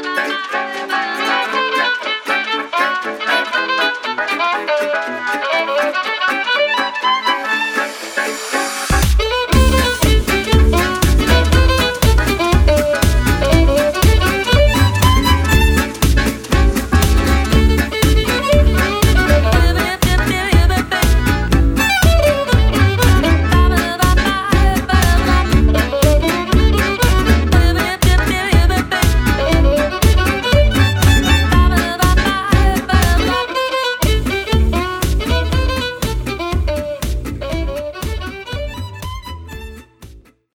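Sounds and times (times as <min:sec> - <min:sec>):
violin: 0:00.3 - 0:40.0.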